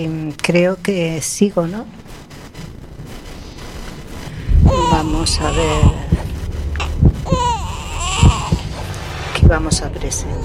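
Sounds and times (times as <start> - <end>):
speech: 0.0 - 2.0, 4.7 - 6.1, 9.5 - 10.4
baby crying: 4.6 - 6.2, 6.8 - 8.7
soft thumps: 5.8 - 8.8.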